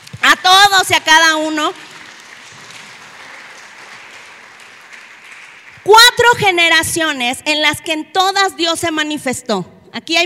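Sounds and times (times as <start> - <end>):
speech: 0.9 - 1.9, 5.8 - 10.2
audience applause: 1.7 - 5.9.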